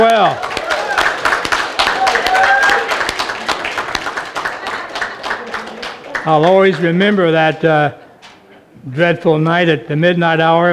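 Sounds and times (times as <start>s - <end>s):
speech: 0.0s - 0.5s, 6.2s - 8.0s, 8.8s - 10.7s
audience applause: 0.0s - 7.0s.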